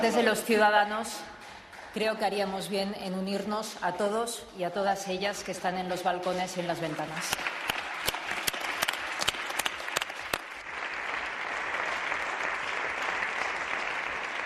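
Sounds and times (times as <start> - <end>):
speech: 0.0 - 1.4, 2.0 - 7.6
parliament members applauding: 6.6 - 14.4.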